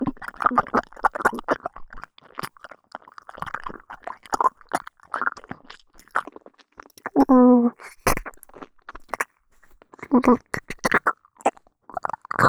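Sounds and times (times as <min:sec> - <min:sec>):
ASMR ear licking in the left ear: 0:00.0 - 0:12.4.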